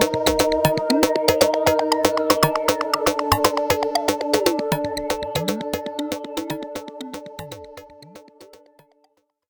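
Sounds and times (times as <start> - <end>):
Pro 1 synthesizer: 0.0 - 9.0.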